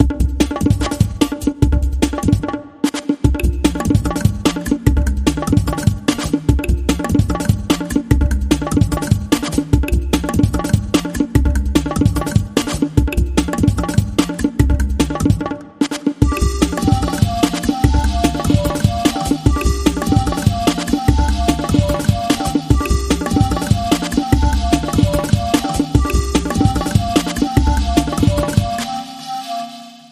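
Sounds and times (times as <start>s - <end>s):
bongo drums: 0.0s - 30.1s.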